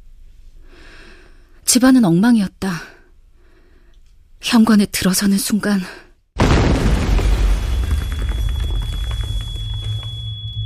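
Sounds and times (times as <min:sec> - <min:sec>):
speech: 0:01.7 - 0:02.9, 0:04.5 - 0:06.0
bomb explosion: 0:06.4 - 0:10.6
high-pitched ringing tone: 0:07.9 - 0:10.6.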